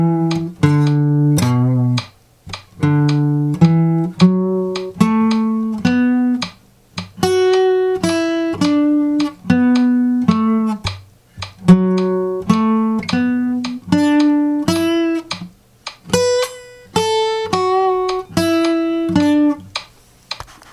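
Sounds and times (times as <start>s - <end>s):
music with agogic accents: 0.0s - 20.4s.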